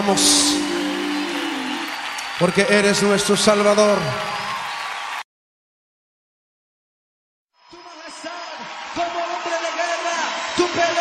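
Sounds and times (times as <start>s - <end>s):
speech: 0.0s - 0.6s, 2.4s - 4.4s
audience applause: 0.0s - 5.2s, 7.9s - 10.9s.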